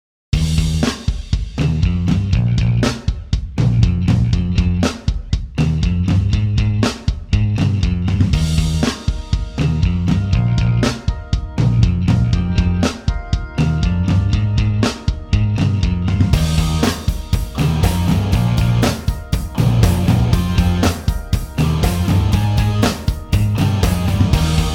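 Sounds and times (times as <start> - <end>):
instrumental pop punk music: 0.4 - 24.7.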